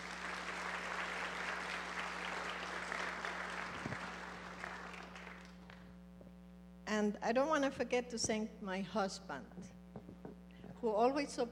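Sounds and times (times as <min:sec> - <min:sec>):
audience applause: 0:00.0 - 0:05.9
speech: 0:07.0 - 0:09.8, 0:10.8 - 0:11.5.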